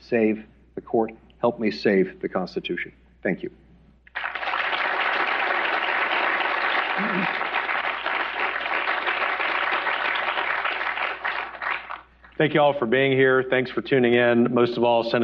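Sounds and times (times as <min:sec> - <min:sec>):
speech: 0:00.1 - 0:03.6, 0:12.4 - 0:15.2
crowd applauding: 0:04.1 - 0:12.1.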